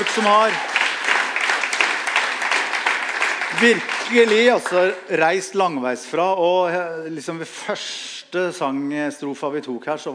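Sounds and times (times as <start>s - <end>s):
speech: 0.0s - 0.7s, 3.6s - 10.1s
audience applause at a singing event: 0.0s - 5.1s.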